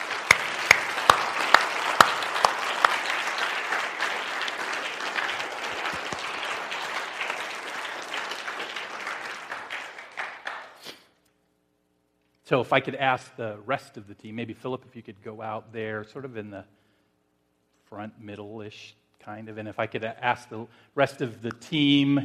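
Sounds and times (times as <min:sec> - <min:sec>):
audience applause: 0:00.0 - 0:10.9
speech: 0:12.5 - 0:16.8, 0:17.9 - 0:22.2.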